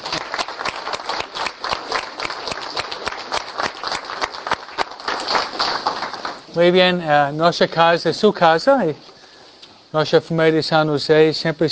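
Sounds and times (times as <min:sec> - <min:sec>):
audience applause: 0:00.0 - 0:06.5
speech: 0:06.6 - 0:09.1, 0:09.9 - 0:11.7.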